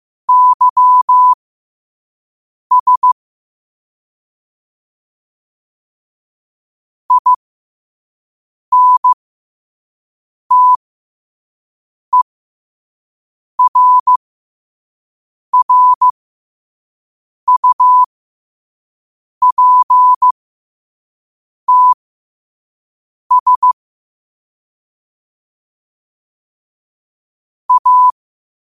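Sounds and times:
morse code at 5 wpm: 0:00.3 - 0:01.4, 0:02.7 - 0:03.2, 0:07.1 - 0:07.4, 0:08.7 - 0:09.2, 0:10.5 - 0:10.8, 0:13.6 - 0:14.2, 0:15.6 - 0:16.1, 0:17.5 - 0:18.1, 0:19.4 - 0:20.4, 0:21.7 - 0:22.0, 0:23.3 - 0:23.8, 0:27.7 - 0:28.2.

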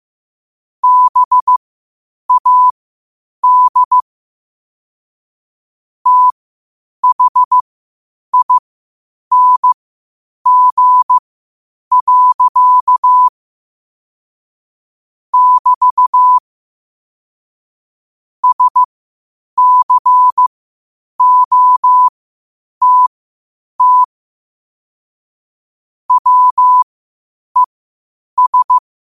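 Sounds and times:
morse code at 5 wpm: 0:00.8 - 0:01.6, 0:02.3 - 0:02.7, 0:03.4 - 0:04.0, 0:06.1 - 0:06.4, 0:07.0 - 0:07.6, 0:08.4 - 0:08.6, 0:09.3 - 0:09.8, 0:10.5 - 0:11.2, 0:11.9 - 0:13.3, 0:15.4 - 0:16.4, 0:18.4 - 0:18.9, 0:19.6 - 0:20.5, 0:21.2 - 0:22.1, 0:22.8 - 0:23.1, 0:23.8 - 0:24.1, 0:26.1 - 0:26.9, 0:28.4 - 0:28.8.

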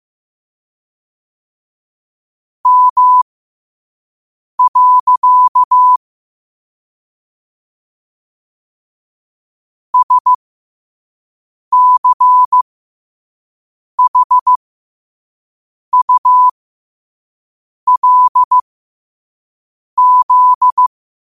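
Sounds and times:
morse code at 5 wpm: 0:02.7 - 0:03.2, 0:04.6 - 0:06.0, 0:10.0 - 0:10.4, 0:11.7 - 0:12.6, 0:14.0 - 0:14.6, 0:16.0 - 0:16.5, 0:17.9 - 0:18.6, 0:20.0 - 0:20.9.

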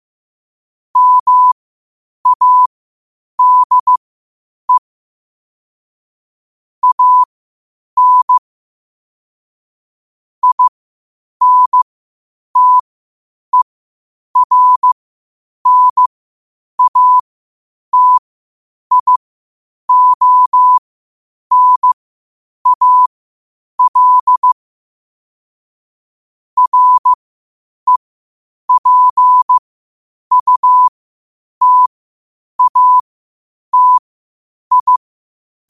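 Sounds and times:
morse code at 5 wpm: 0:01.0 - 0:01.6, 0:02.2 - 0:02.7, 0:03.4 - 0:04.0, 0:06.8 - 0:07.3, 0:08.0 - 0:08.4, 0:10.4 - 0:10.7, 0:11.4 - 0:11.8, 0:12.6 - 0:12.8, 0:14.4 - 0:15.0, 0:15.6 - 0:16.1, 0:16.8 - 0:17.2, 0:17.9 - 0:18.2, 0:18.9 - 0:19.2, 0:19.9 - 0:20.8, 0:21.5 - 0:22.0, 0:22.6 - 0:23.1, 0:23.8 - 0:24.6, 0:26.6 - 0:27.2, 0:28.7 - 0:29.6, 0:30.3 - 0:30.9, 0:31.6 - 0:31.9, 0:32.6 - 0:33.0, 0:33.7 - 0:34.0, 0:34.7 - 0:35.0.

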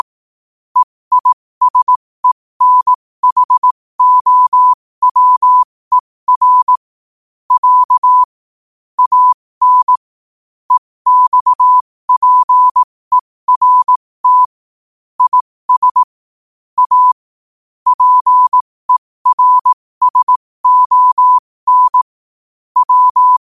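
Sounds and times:
morse code at 5 wpm: 0:00.8 - 0:06.8, 0:07.5 - 0:08.4, 0:09.0 - 0:10.0, 0:10.7 - 0:14.6, 0:15.2 - 0:16.1, 0:16.8 - 0:17.2, 0:17.9 - 0:22.2, 0:22.8 - 0:23.4.

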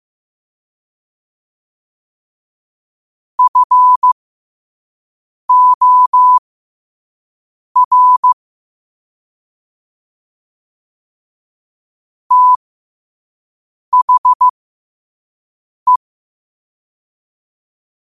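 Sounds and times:
morse code at 5 wpm: 0:03.4 - 0:04.2, 0:05.5 - 0:06.4, 0:07.8 - 0:08.4, 0:12.3 - 0:12.6, 0:13.9 - 0:14.5.

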